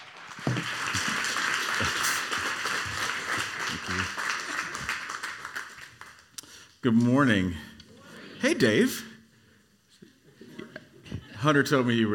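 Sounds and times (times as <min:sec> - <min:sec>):
faint audience hand clapping welcoming a speaker at a summit: 0:00.0 - 0:06.5
speech: 0:06.8 - 0:07.7, 0:08.4 - 0:09.1, 0:11.4 - 0:12.1.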